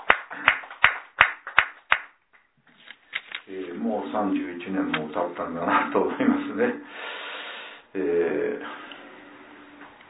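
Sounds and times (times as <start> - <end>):
hand claps for a birthday at a family gathering: 0.0 - 2.5
speech: 4.0 - 7.1, 7.9 - 8.8.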